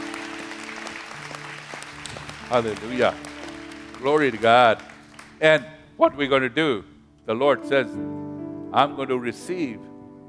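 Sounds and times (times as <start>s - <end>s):
audience clapping: 0.0s - 5.8s
speech: 2.5s - 3.3s, 4.0s - 9.9s.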